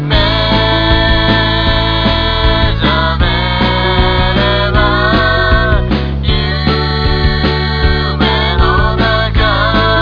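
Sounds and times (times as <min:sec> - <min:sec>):
beats: 0:00.0 - 0:10.0.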